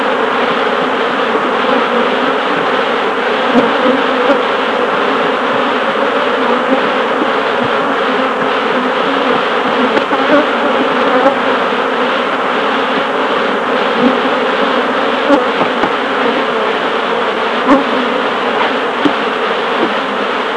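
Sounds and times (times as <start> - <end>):
honey bees buzzing: 0.0 - 20.5.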